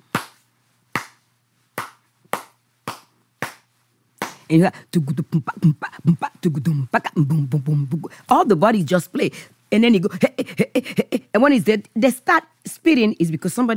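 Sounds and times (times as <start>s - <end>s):
hand-clapped traditional African rhythm: 0.1s - 1.2s, 1.8s - 4.5s
speech: 4.5s - 13.7s.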